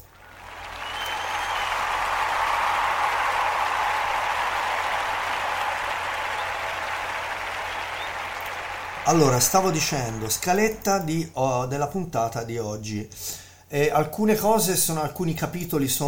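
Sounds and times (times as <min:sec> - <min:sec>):
short applause effect: 0:00.0 - 0:10.8
speech: 0:09.1 - 0:16.0.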